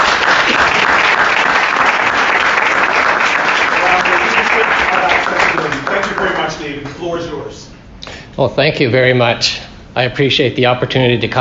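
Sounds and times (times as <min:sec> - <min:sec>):
audience applause welcoming a speaker: 0:00.0 - 0:06.7
speech: 0:08.4 - 0:11.3.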